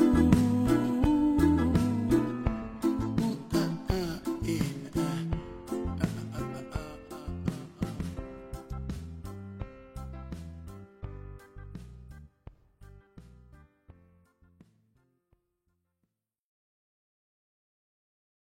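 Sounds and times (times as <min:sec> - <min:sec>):
reggae remix music: 0:00.0 - 0:13.7.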